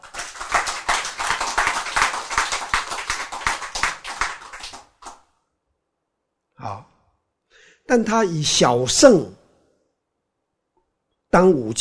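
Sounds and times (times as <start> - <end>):
hand clapping: 0.0 - 5.3
speech: 7.9 - 9.4, 11.3 - 11.7.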